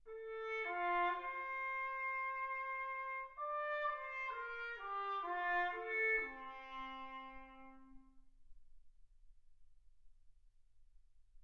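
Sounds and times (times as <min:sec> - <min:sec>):
trumpet: 0:00.1 - 0:08.3.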